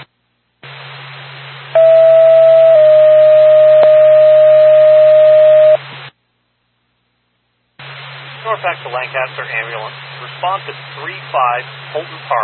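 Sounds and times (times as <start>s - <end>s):
dispatch paging tone over radio: 1.8s - 5.8s
radio hiss: 7.8s - 12.4s
speech: 8.9s - 12.4s.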